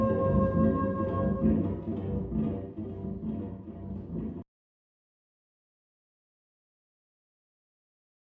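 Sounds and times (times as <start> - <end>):
saxophone: 0.0 - 4.2.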